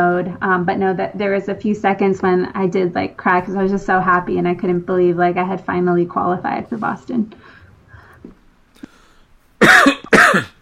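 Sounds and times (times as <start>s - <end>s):
speech: 0.0s - 7.6s, 10.3s - 10.5s
person coughing after swallowing water: 9.6s - 10.6s.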